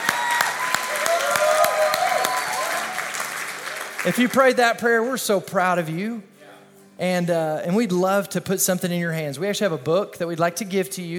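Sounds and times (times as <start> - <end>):
faint voices and cheers: 0.0 - 4.0
church audience clapping: 0.0 - 5.2
speech: 4.0 - 6.3, 7.0 - 11.1.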